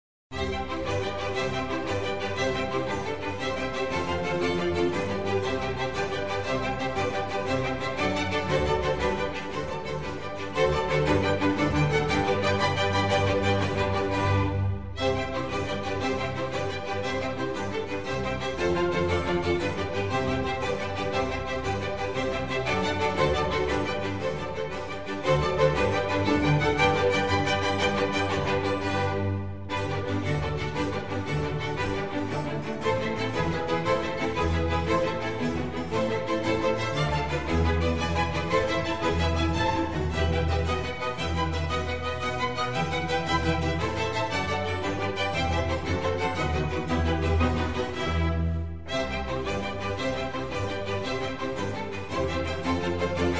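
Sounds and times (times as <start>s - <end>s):
concerto for strings in C major: 0.3s - 53.3s.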